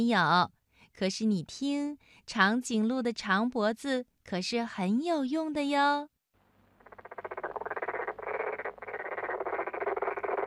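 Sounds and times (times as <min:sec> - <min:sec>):
speech: 0:00.0 - 0:06.1
frogs croaking in a pond: 0:06.8 - 0:10.4.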